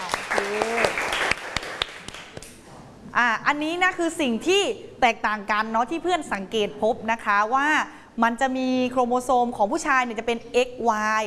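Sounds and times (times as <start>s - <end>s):
classroom applause: 0.0s - 2.5s
speech: 3.2s - 11.2s.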